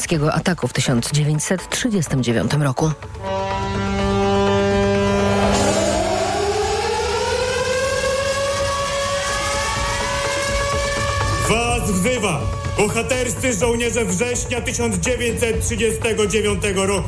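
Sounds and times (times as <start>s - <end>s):
speech: 0.0s - 4.0s, 11.9s - 17.0s
air raid sirens wailing: 3.2s - 15.0s.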